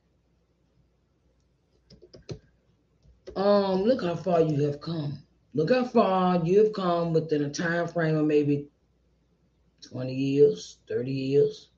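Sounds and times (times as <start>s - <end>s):
typing on a computer keyboard: 1.8s - 2.5s
speech: 3.4s - 8.7s, 9.8s - 11.7s.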